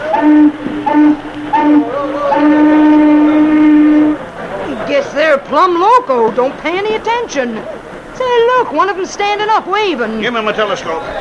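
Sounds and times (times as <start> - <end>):
steamboat warning whistle blasts: 0.0 - 4.3
speech: 0.2 - 2.5, 5.3 - 11.1.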